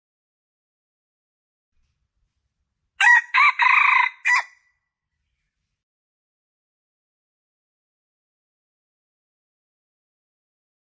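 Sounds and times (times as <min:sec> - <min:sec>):
red junglefowl crowing: 0:03.0 - 0:04.6.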